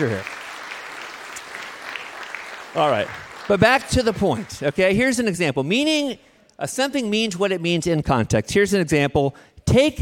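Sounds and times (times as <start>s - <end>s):
speech: 0.0s - 0.3s, 2.8s - 10.0s
round of applause: 0.0s - 4.9s.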